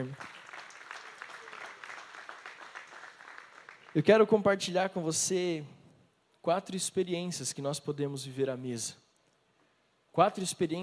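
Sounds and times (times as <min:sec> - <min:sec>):
speech: 0:00.0 - 0:00.3, 0:04.0 - 0:05.8, 0:06.4 - 0:09.0, 0:10.2 - 0:10.8
audience applauding: 0:00.0 - 0:04.1.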